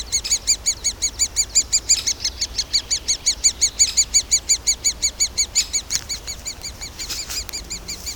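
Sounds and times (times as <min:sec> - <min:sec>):
great spotted woodpecker calls: 0:00.0 - 0:08.1.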